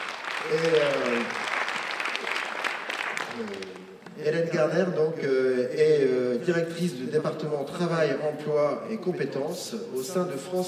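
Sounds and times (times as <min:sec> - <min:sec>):
audience applause: 0:00.0 - 0:04.2
speech: 0:00.4 - 0:01.0, 0:04.4 - 0:10.6.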